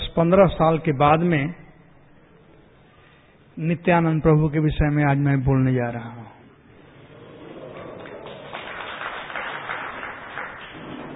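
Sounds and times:
speech: 0.2s - 1.6s, 3.6s - 6.4s
audience clapping: 7.2s - 11.1s.

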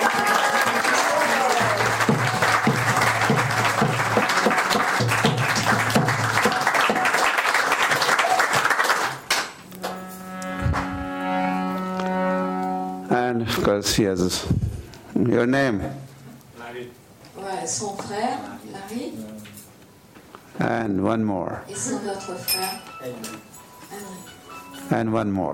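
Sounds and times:
audience applause welcoming a person at a gathering: 0.0s - 10.0s
sustained tones: 9.6s - 13.7s
speech: 13.7s - 16.1s, 20.6s - 23.4s, 24.9s - 25.5s.

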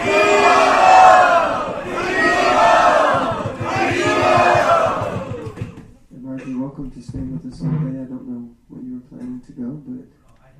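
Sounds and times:
crowd loudly chanting: 0.0s - 5.8s.

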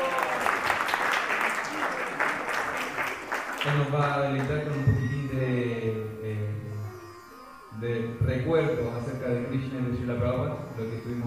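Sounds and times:
audience applause: 0.0s - 4.8s
speech: 3.6s - 6.7s, 7.8s - 11.2s.

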